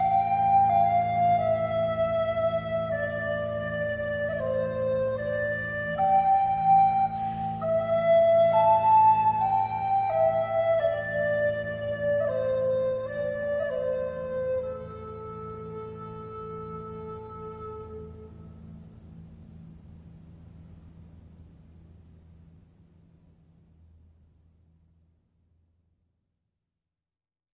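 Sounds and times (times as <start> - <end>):
lullaby music: 0.0 - 17.9.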